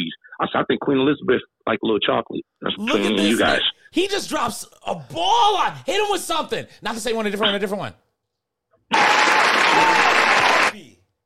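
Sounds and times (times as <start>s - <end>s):
speech: 0.4s - 8.0s
clapping applause: 8.9s - 10.9s.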